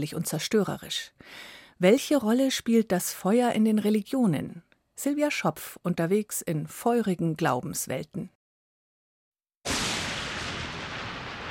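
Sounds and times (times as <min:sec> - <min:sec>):
speech: 0:00.0 - 0:08.4
thunder: 0:09.7 - 0:11.4.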